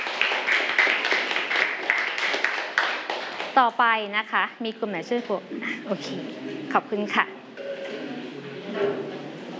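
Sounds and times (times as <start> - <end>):
classroom applause: 0.0 - 3.6
speech: 3.6 - 7.4, 8.8 - 9.2.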